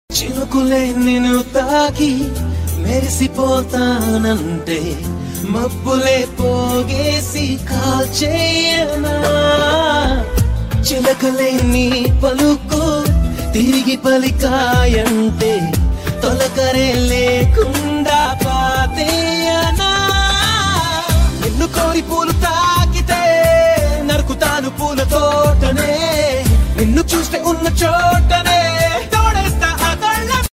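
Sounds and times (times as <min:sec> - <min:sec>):
romantic background music: 0:00.1 - 0:30.5.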